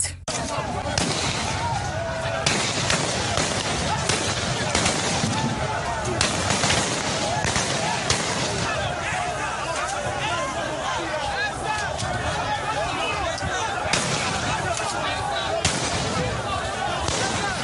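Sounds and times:
gunshots fired at protesters: 0.3 - 9.2, 13.8 - 17.6
crowd noise: 0.3 - 17.6
voices shouting: 0.3 - 17.6.

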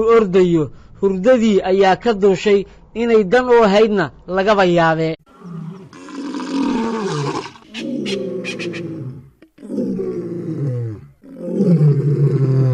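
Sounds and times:
speech: 0.0 - 5.2
lion roaring: 5.3 - 12.7.

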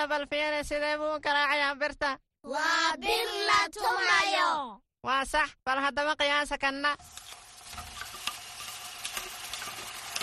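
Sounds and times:
speech: 0.1 - 7.2
food frying in a restaurant: 7.0 - 10.2.

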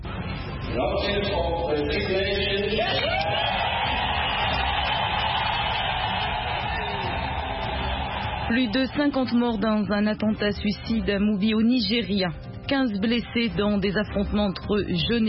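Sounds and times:
speech: 0.7 - 3.6, 8.5 - 15.2
crowd cheering and shouting: 2.4 - 9.2
whoops and wails: 2.8 - 8.5.

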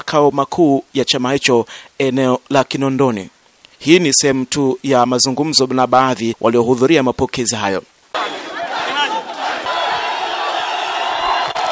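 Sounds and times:
speech: 0.0 - 8.3
large crowd cheering at Mwalimu Julius Nyerere International Airport to welcome Tundu Lissu: 8.1 - 11.7.

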